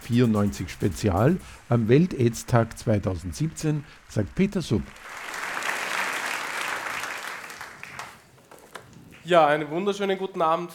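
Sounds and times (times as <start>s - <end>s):
speech: 0.1s - 5.2s, 9.3s - 10.7s
audience applauding at a World AIDS Day 2017 event: 1.7s - 8.8s.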